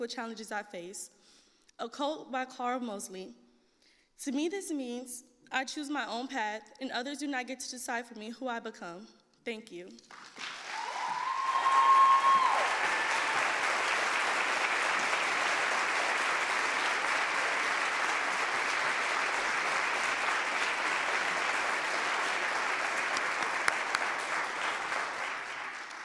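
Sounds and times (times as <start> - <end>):
speech: 0.0 - 3.4, 4.2 - 10.5
audience applause: 10.1 - 26.0.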